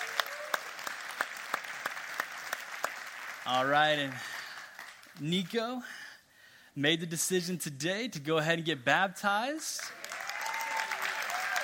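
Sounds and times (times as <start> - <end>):
applause: 0.0 - 5.4, 9.8 - 11.6
speech: 3.4 - 4.4, 5.2 - 6.1, 6.8 - 10.1.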